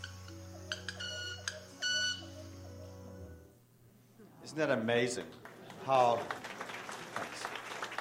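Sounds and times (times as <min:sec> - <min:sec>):
bird's vibrating wing feathers during courtship display: 0:00.0 - 0:03.4
speech: 0:04.5 - 0:06.4.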